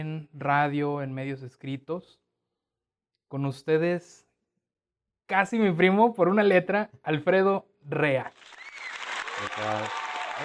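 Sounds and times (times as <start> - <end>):
speech: 0.0 - 2.2, 3.3 - 4.2, 5.3 - 8.6, 9.4 - 10.4
canned applause sound effect: 8.3 - 10.4
short tonal vocal-like whoop: 9.2 - 10.4.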